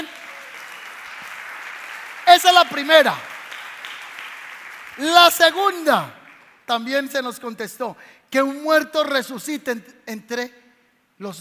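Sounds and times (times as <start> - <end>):
audience applauding: 0.0 - 6.7
speech: 2.4 - 3.3, 5.0 - 10.6, 11.2 - 11.3.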